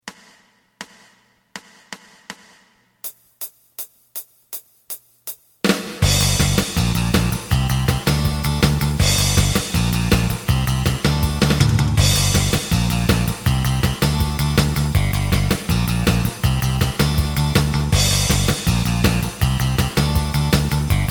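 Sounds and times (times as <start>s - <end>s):
lead melody: 6.0s - 21.0s.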